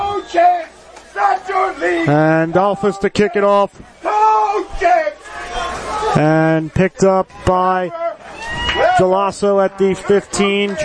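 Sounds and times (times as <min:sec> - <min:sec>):
stadium crowd cheering: 0:00.0 - 0:10.8
speech: 0:01.3 - 0:05.2, 0:06.1 - 0:08.0, 0:08.7 - 0:10.8.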